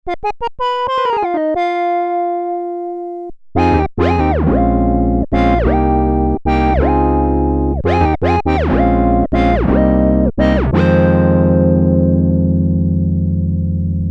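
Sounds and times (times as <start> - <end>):
mellow music: 0.1 - 14.1.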